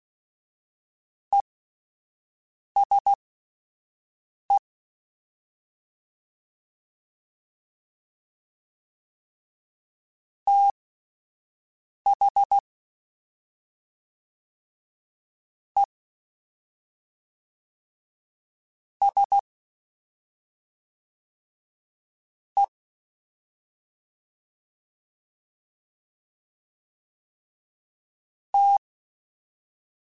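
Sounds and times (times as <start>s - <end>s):
fast CW Morse code groups: 2.8s - 3.2s, 10.5s - 10.7s, 12.1s - 12.6s, 19.0s - 19.4s, 28.6s - 28.8s.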